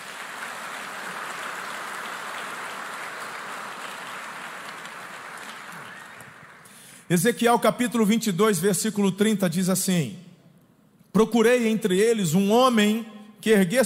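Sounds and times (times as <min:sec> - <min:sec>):
crowd applauding: 0:00.0 - 0:06.9
speech: 0:07.1 - 0:10.3, 0:11.1 - 0:13.8.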